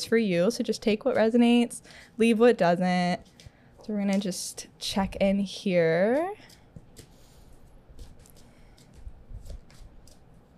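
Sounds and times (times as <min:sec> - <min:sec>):
speech: 0:00.0 - 0:06.6
tarot cards being shuffled and drawn: 0:06.1 - 0:10.4.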